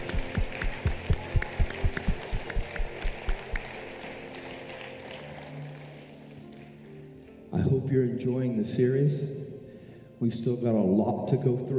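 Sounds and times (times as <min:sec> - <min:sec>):
audience clapping hands: 0:00.0 - 0:07.1
speech: 0:07.6 - 0:09.4, 0:10.2 - 0:11.7.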